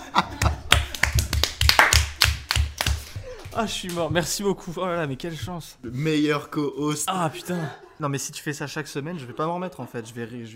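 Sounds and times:
laughter: 0.0 - 1.3, 7.1 - 10.5
audience clapping: 0.0 - 4.4
speech: 3.6 - 10.5.

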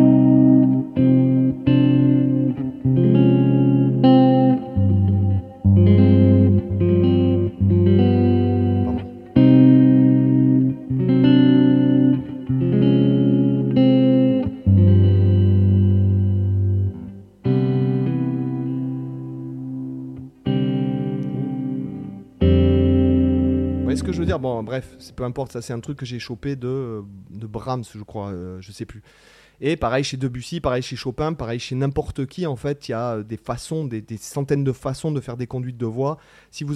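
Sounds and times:
electric guitar chord progression through effects: 0.0 - 25.2
speech: 24.4 - 36.7.

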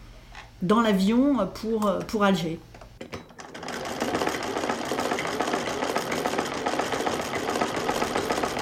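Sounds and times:
speech: 0.6 - 3.2
cast-iron Singer sewing machine running: 3.4 - 8.5.

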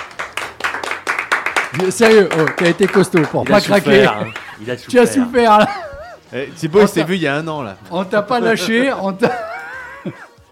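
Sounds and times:
people clapping: 0.0 - 4.7
speech: 1.7 - 10.2
laughter: 2.7 - 7.3, 8.3 - 10.5.

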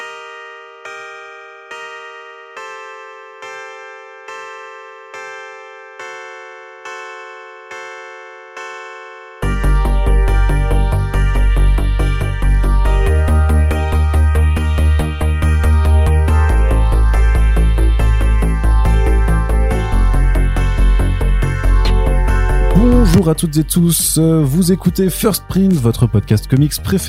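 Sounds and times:
podcast opening theme music: 9.4 - 25.4
speech: 23.3 - 27.0.

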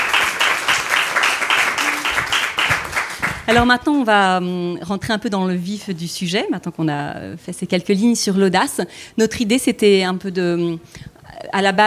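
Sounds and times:
applause from a small group: 0.0 - 3.7
speech: 3.5 - 11.8.

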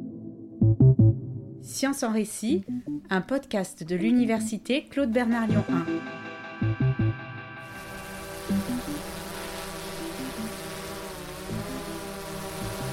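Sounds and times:
speech: 0.8 - 6.9
drone buzzing in flight: 7.0 - 12.9.

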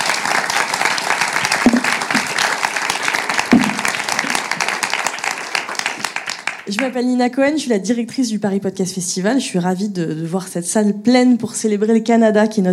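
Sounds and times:
audience applause: 0.0 - 6.8
speech: 6.7 - 12.7.

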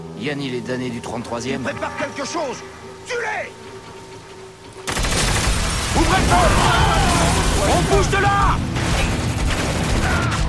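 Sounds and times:
speech: 0.2 - 3.6, 6.1 - 6.8, 7.6 - 8.8
gunfire: 4.9 - 8.1, 8.7 - 10.4.

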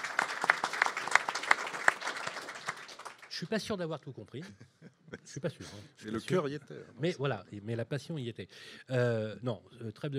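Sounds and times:
audience applause: 0.0 - 3.4
speech: 3.4 - 10.1.

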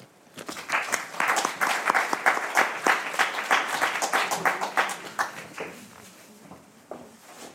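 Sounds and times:
audience applause: 0.4 - 6.0.

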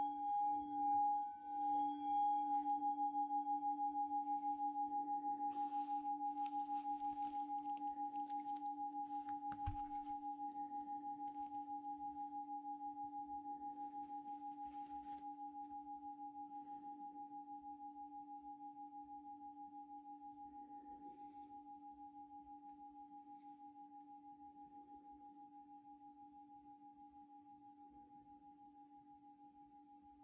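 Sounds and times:
Tibetan singing bowl struck and ringing: 0.0 - 17.2
soft brushing and rustling strokes: 5.5 - 10.2, 14.0 - 15.3.

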